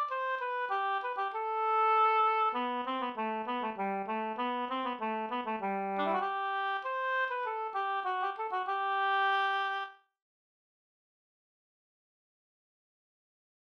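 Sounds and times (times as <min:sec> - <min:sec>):
slängpolska folk dance tune: 0:00.0 - 0:09.9.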